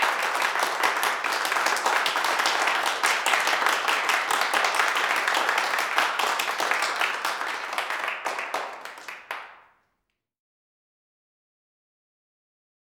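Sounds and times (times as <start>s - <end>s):
heavy indoor applause of a small crowd in a large room: 0.0s - 9.8s.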